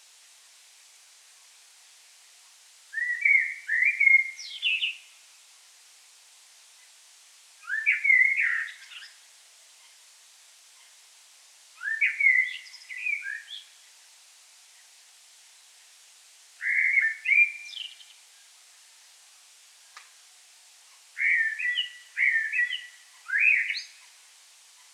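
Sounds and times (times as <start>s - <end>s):
common blackbird singing mellow whistled phrases: 2.9s - 5.1s, 7.6s - 9.2s, 11.8s - 13.8s, 16.6s - 18.2s, 21.2s - 24.1s.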